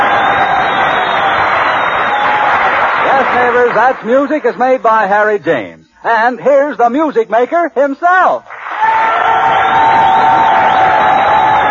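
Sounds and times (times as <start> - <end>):
audience applause and cheering: 0.0 - 4.5, 8.5 - 11.6
speech: 3.3 - 9.0.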